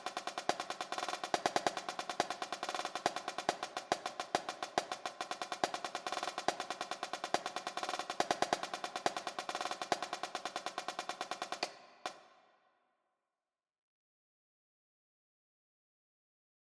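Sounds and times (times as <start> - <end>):
jig snare drum: 0.0 - 12.4.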